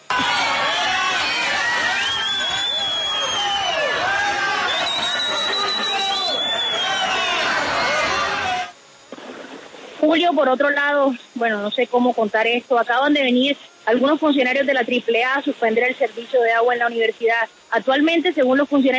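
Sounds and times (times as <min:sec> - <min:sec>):
crowd booing: 0:00.0 - 0:08.8
speech: 0:10.1 - 0:18.9.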